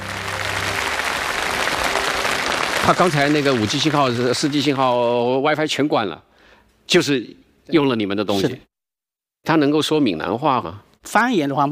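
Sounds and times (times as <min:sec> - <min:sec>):
audience applause at a live product demonstration: 0:00.0 - 0:05.4
speech: 0:02.9 - 0:06.3, 0:06.9 - 0:08.7, 0:09.4 - 0:11.7.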